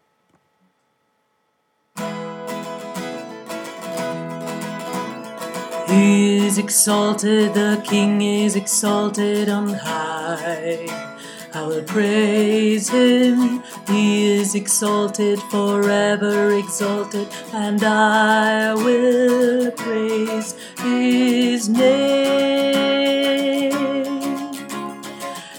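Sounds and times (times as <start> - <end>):
tenor singing: 5.8 - 25.0.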